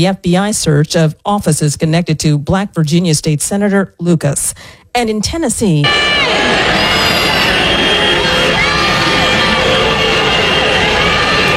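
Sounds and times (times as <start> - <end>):
speech: 0.0 - 7.1
crowd of protesters shouting and cheering outside a state legislature: 5.8 - 11.5.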